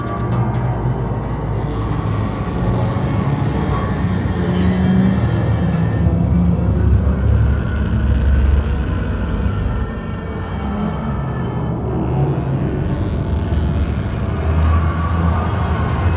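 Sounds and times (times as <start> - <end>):
ambient texture: 0.0 - 16.1.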